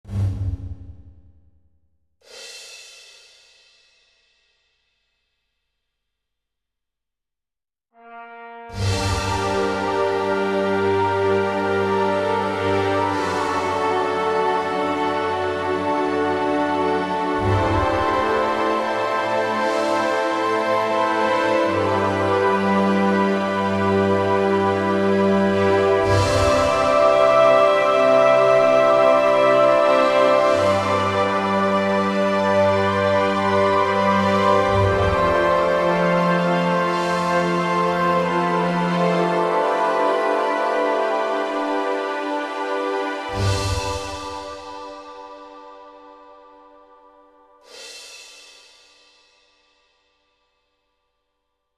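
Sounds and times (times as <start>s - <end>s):
orchestra: 8.0s - 46.5s.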